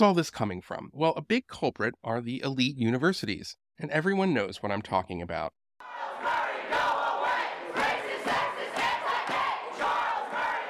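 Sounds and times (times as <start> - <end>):
speech: 0.0 - 5.6
protest crowd chanting and shouting: 5.8 - 10.6.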